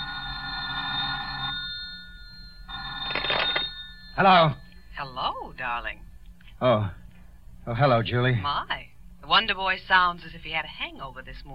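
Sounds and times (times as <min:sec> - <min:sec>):
telephone ringing: 0:00.0 - 0:06.1
speech: 0:04.2 - 0:07.0, 0:07.7 - 0:11.5.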